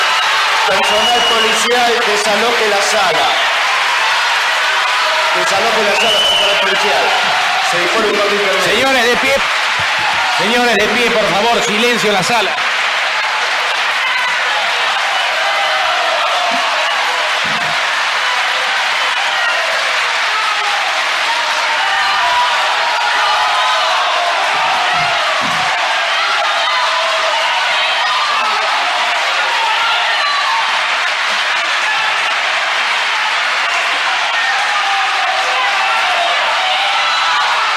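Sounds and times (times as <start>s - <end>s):
courtroom crowd applause: 0.0s - 37.7s
scattered cheers: 0.0s - 37.7s
speech: 0.7s - 3.5s, 5.3s - 12.7s.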